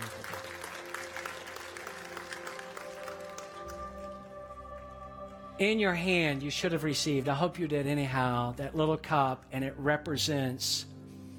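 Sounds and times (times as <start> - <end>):
audience clapping hands in praise: 0.0 - 5.3
speech: 5.6 - 10.9.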